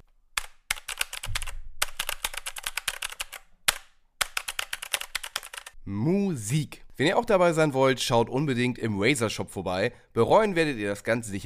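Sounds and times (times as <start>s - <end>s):
typing on mechanical keyboard switches: 0.4s - 5.8s
speech: 5.9s - 11.4s.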